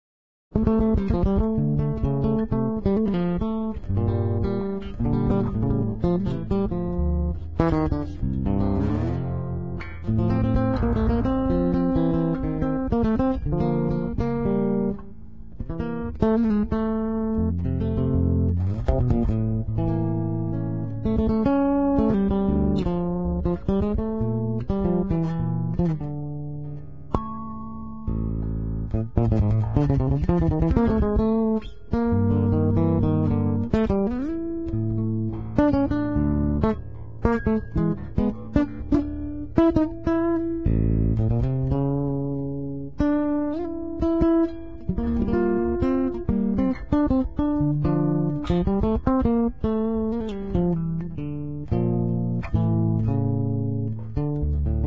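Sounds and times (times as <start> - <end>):
electric bass guitar: 0.5 - 54.8.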